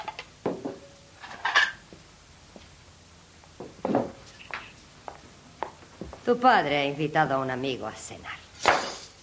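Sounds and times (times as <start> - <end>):
plates set down on a dinner table: 0.0 - 1.8, 8.6 - 9.2
speech: 6.3 - 8.4.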